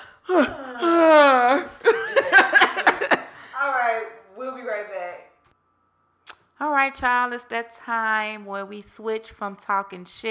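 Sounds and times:
yawning groans: 0:00.0 - 0:01.9
speech: 0:00.3 - 0:00.6, 0:06.9 - 0:10.2
laughter: 0:01.4 - 0:03.6.

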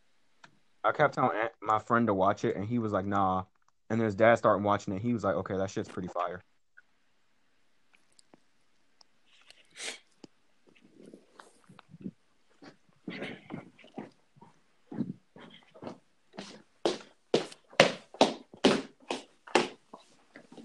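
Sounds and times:
speech: 0:00.8 - 0:06.5
stomping footsteps: 0:11.9 - 0:20.6.

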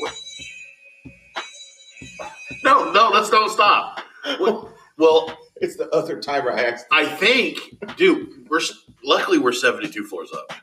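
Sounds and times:
fire alarm tone: 0:00.0 - 0:05.5
speech: 0:02.0 - 0:10.6.

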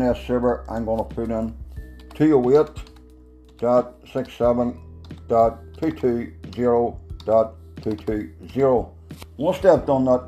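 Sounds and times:
speech: 0:00.0 - 0:01.6, 0:02.2 - 0:02.9, 0:03.6 - 0:10.2
computer keyboard typing: 0:00.8 - 0:08.6.

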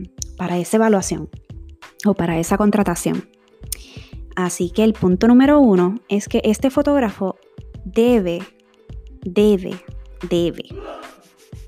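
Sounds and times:
speech: 0:00.0 - 0:01.4, 0:02.0 - 0:08.6, 0:09.2 - 0:11.2
sneeze: 0:10.7 - 0:11.3.

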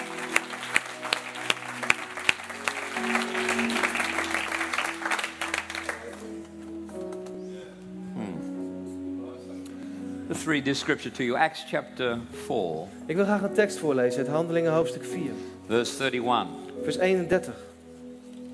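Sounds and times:
audience applause: 0:00.0 - 0:06.5
speech: 0:10.4 - 0:17.7.

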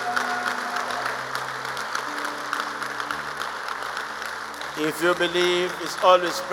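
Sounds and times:
church congregation clapping: 0:00.0 - 0:06.5
sustained low musical tones: 0:00.0 - 0:06.5
speech: 0:04.8 - 0:06.5.

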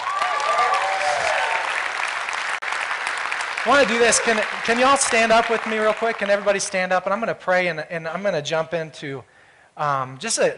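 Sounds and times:
audience applause: 0:00.0 - 0:06.8
speech: 0:03.6 - 0:10.5.

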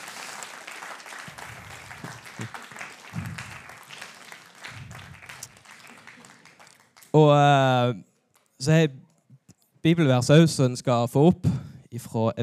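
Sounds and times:
applause: 0:00.0 - 0:07.2
speech: 0:07.2 - 0:09.0, 0:09.8 - 0:12.4.

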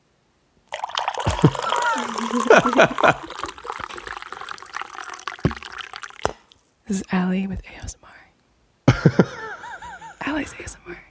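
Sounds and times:
coffee pouring into a cup: 0:00.7 - 0:06.6
laughter: 0:01.3 - 0:04.1, 0:08.9 - 0:10.5
speech: 0:02.4 - 0:03.5, 0:06.9 - 0:08.0, 0:09.0 - 0:09.4, 0:10.4 - 0:11.1.

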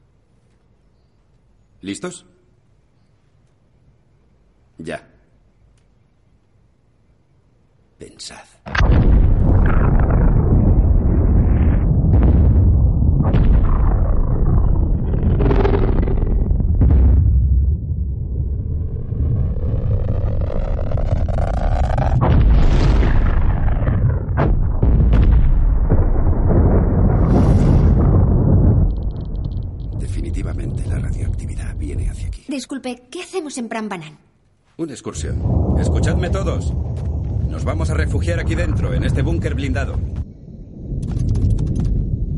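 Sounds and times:
speech: 0:01.8 - 0:02.4, 0:04.8 - 0:05.1, 0:32.8 - 0:40.2
atomic bomb explosion: 0:08.7 - 0:32.4, 0:35.2 - 0:42.3.

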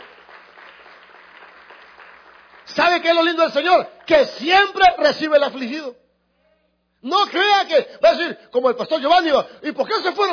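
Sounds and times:
audience applauding: 0:00.0 - 0:03.4
speech: 0:02.7 - 0:06.0, 0:07.0 - 0:10.3.

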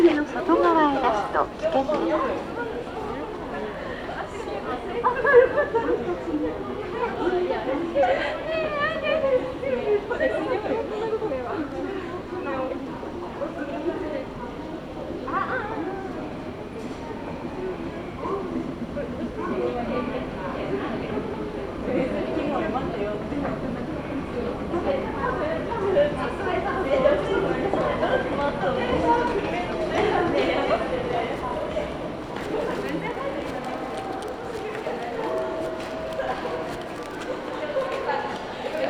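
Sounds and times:
people talking on a Kyudai Main Line train: 0:00.0 - 0:38.8
Kyudai Main Line train rumble from Tanushimaru toward Kurume: 0:18.7 - 0:38.8.

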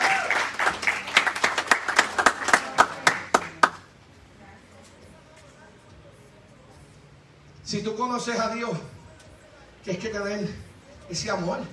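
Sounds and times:
audience clapping: 0:00.0 - 0:04.0
speech: 0:07.7 - 0:08.9, 0:09.8 - 0:11.7.

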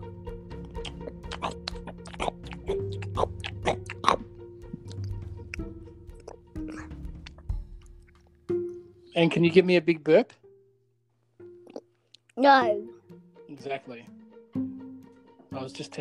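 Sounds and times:
person chewing chocolate: 0:00.6 - 0:08.3
speech: 0:09.2 - 0:10.4, 0:12.4 - 0:12.9, 0:13.6 - 0:14.2, 0:15.6 - 0:15.9.

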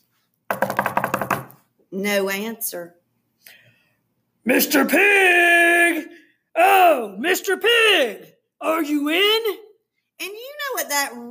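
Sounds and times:
knocking on a door: 0:00.5 - 0:01.6
speech: 0:01.9 - 0:03.6, 0:04.5 - 0:09.6, 0:10.2 - 0:11.2.

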